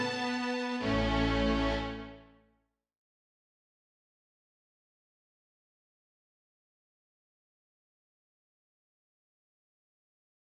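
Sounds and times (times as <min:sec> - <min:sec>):
strings: 0:00.0 - 0:02.5.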